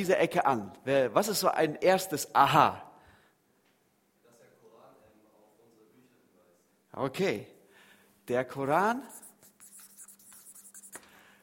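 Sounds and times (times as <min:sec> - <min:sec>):
speech: 0:00.0 - 0:02.9, 0:07.0 - 0:07.5, 0:08.3 - 0:09.2
pen scratching as notes are written down: 0:09.1 - 0:11.0.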